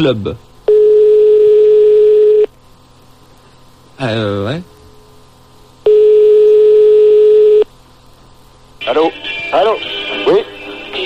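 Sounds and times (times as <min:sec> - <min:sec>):
speech: 0:00.0 - 0:00.5, 0:04.0 - 0:04.7
telephone line tone on a call placed to a discotheque: 0:00.7 - 0:02.5, 0:05.9 - 0:07.7.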